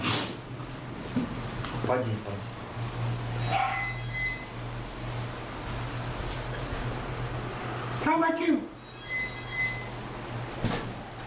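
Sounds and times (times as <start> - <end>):
steady low electrical hum: 0.0 - 11.2
speech: 1.9 - 2.6, 8.0 - 8.7
small dog yipping: 3.4 - 4.1.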